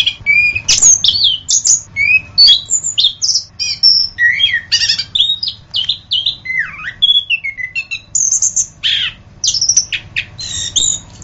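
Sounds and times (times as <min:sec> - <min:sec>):
Orange-headed thrush singing chirps, slurred whistles and scratchy notes: 0:00.0 - 0:11.2.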